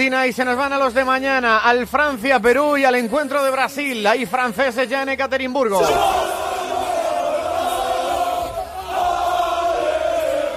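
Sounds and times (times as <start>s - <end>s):
speech: 0.0s - 6.4s
Peruvian football fans chanting at the World Cup: 5.8s - 10.5s.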